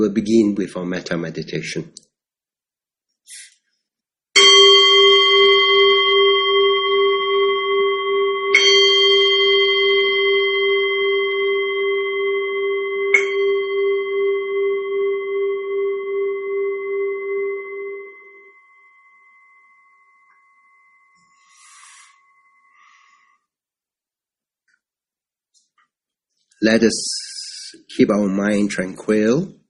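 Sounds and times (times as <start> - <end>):
speech: 0.1 - 2.1, 26.6 - 29.6
meditation bell being rung: 4.3 - 23.4.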